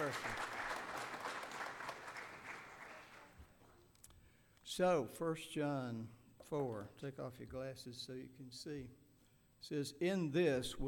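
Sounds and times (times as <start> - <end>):
audience applause for an anniversary: 0.0 - 3.4
speech: 0.1 - 0.4, 4.8 - 9.0, 9.6 - 10.8.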